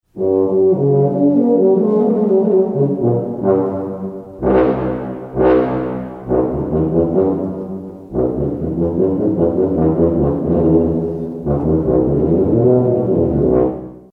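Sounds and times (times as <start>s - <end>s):
tuba: 0.0s - 14.1s.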